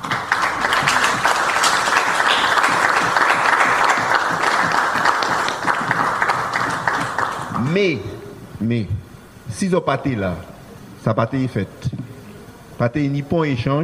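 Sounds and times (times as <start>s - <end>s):
audience applause: 0.0s - 7.8s
speech: 7.7s - 12.0s, 12.8s - 13.8s.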